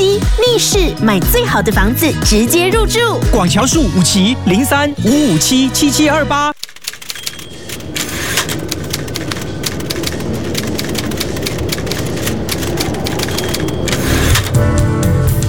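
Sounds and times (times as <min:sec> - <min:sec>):
speech: 0:00.2 - 0:06.6
typewriter keys clacking: 0:06.6 - 0:14.6.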